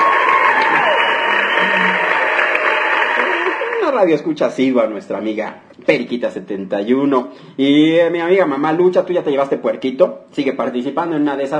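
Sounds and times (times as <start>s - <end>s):
studio audience applause: 0.0s - 4.2s
speech: 4.0s - 11.5s.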